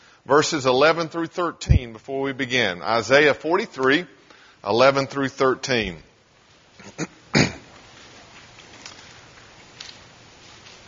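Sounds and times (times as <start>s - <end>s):
speech: 0.2s - 6.1s, 6.8s - 7.1s
Bible pages rustling: 7.7s - 10.8s.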